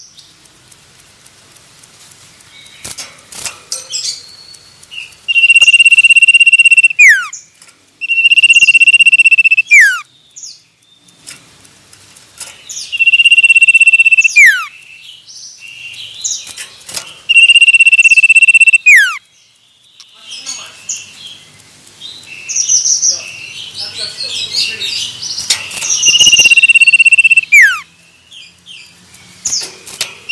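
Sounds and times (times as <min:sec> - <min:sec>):
other birds chirping: 0:03.7 - 0:11.5, 0:12.4 - 0:30.2
common iora song: 0:05.3 - 0:07.3, 0:08.0 - 0:10.0, 0:12.9 - 0:14.7, 0:17.3 - 0:19.2, 0:26.0 - 0:27.8.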